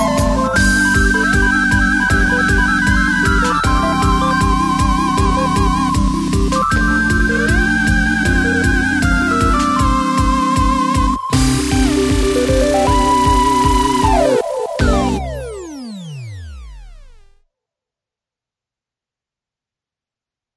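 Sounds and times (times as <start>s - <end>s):
video game pop music: 0.0s - 16.1s.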